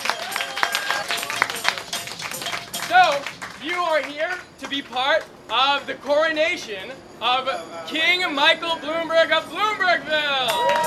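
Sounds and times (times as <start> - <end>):
crowd cheering: 0.0 - 4.5, 10.2 - 10.8
crowd applause at a staged mock coronation rally for Michael Bloomberg: 0.0 - 5.6, 10.5 - 10.8
speech: 4.0 - 10.8.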